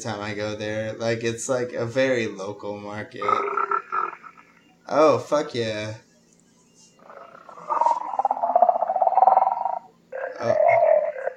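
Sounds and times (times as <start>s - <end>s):
speech: 0.0s - 3.6s, 4.9s - 6.0s
sampling keyboard playing a buzzy pulsing tone: 3.2s - 11.3s.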